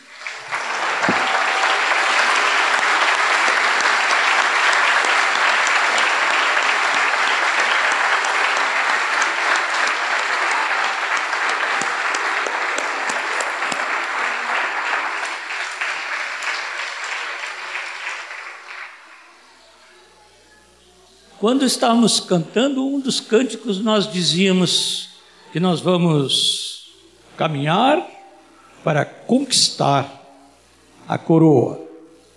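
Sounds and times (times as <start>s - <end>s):
audience applauding: 0.0s - 19.5s
speech: 21.4s - 26.6s, 27.4s - 28.1s, 28.8s - 30.2s, 31.1s - 31.8s.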